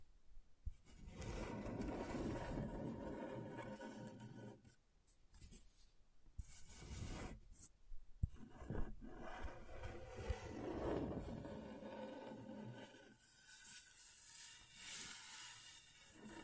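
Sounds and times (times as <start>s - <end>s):
scratchboard being scraped: 0.9s - 4.7s, 6.5s - 7.5s, 8.4s - 16.4s.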